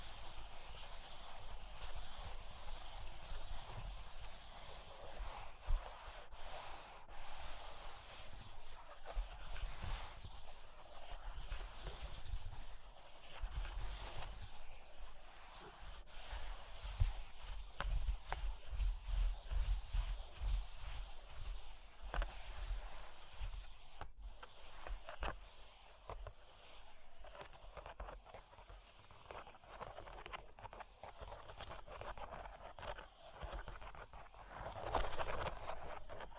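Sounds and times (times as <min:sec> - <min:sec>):
cork and wood being scratched and traced: 0:00.2 - 0:36.3.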